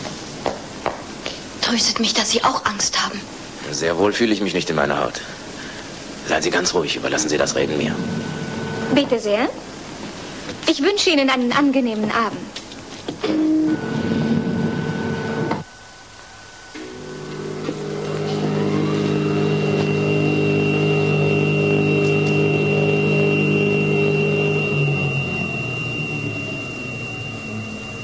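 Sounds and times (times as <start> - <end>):
speech: 1.7 - 5.4, 6.3 - 8.3, 8.9 - 9.6, 10.7 - 12.6, 13.2 - 13.9
elevator descending: 13.2 - 15.8, 16.4 - 28.0.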